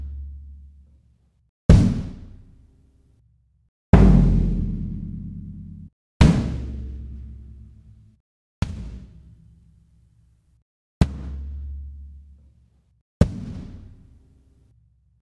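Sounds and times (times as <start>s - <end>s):
kick drums: 1.7s - 2.2s, 4.0s - 6.6s, 13.2s - 13.7s.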